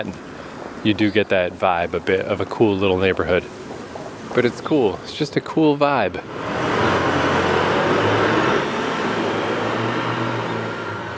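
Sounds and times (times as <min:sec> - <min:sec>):
speech: 0:00.0 - 0:03.6, 0:04.3 - 0:06.8
loud motorcycles revving past on street: 0:06.2 - 0:11.1.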